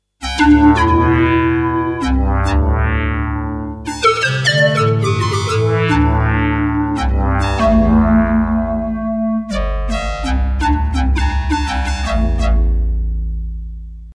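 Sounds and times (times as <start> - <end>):
V50 blow lead synth: 0.2 - 13.5.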